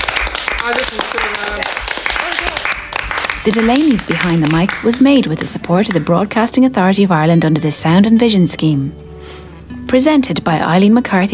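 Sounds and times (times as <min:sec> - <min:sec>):
audience clapping: 0:00.0 - 0:06.4
speech: 0:00.7 - 0:02.5, 0:03.4 - 0:11.3.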